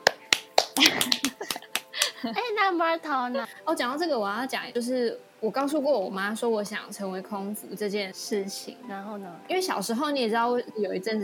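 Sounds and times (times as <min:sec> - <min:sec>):
hand claps: 0:00.0 - 0:02.2
speech: 0:02.2 - 0:11.2.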